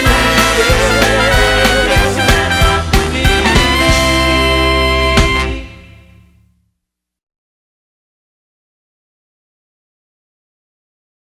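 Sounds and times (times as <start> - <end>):
dixieland rock music: 0.0 - 6.3.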